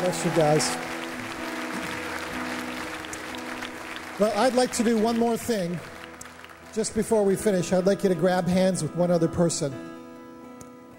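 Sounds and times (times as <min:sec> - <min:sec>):
speech: 0:00.0 - 0:00.9, 0:04.2 - 0:05.9, 0:06.8 - 0:09.9
congregation applause at a church service: 0:00.0 - 0:07.9.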